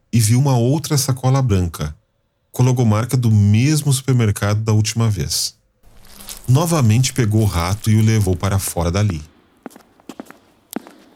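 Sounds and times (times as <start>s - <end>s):
speech: 0.1s - 2.0s, 2.6s - 5.6s, 6.4s - 9.8s
footsteps walking: 5.8s - 11.1s.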